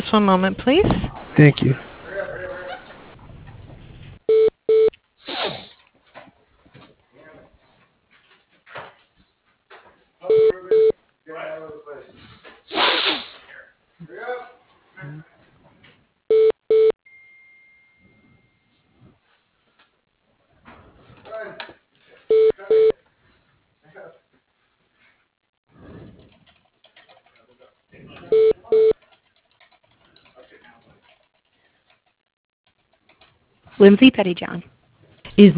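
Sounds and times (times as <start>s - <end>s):
speech: 0.1s - 1.9s, 33.8s - 34.8s, 35.4s - 35.5s
telephone dialing tones and beeps during transfer to voicemail: 4.3s - 4.9s, 10.3s - 11.0s, 16.3s - 17.0s, 22.3s - 23.0s, 28.3s - 29.0s
phone-line talk: 10.3s - 10.9s, 22.3s - 23.0s.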